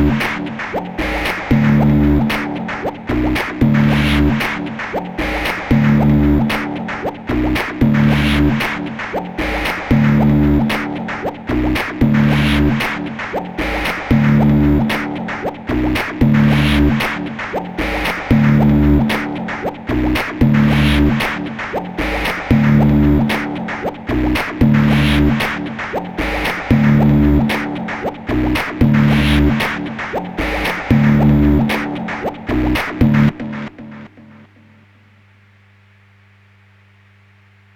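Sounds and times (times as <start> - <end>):
sampler beat: 0.0 - 34.5.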